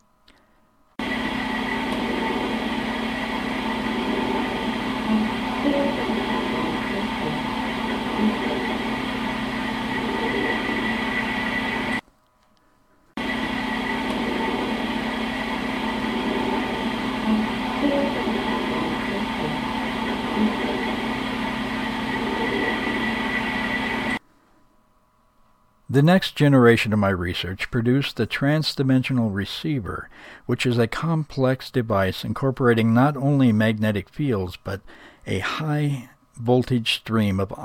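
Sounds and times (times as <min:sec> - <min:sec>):
EVP recording resembling humming: 0:00.0 - 0:26.7
speech: 0:26.0 - 0:37.6.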